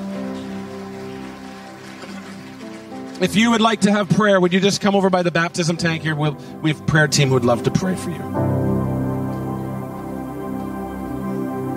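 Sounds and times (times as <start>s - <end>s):
audience clapping in praise: 0.0s - 6.0s
sustained low keyboard chords: 0.0s - 11.7s
speech: 3.2s - 8.6s.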